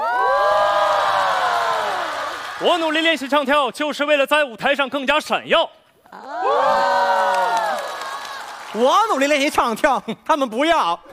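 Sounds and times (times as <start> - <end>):
audience screaming and cheering below stage: 0.0 - 3.2, 6.1 - 8.9
speech: 2.6 - 6.8, 8.7 - 11.1.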